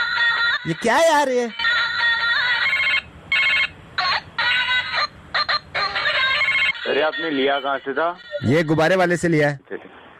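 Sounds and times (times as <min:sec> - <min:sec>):
speech: 0:00.6 - 0:01.6, 0:07.0 - 0:09.9
strange phone ringtone bell ringing: 0:01.6 - 0:09.0.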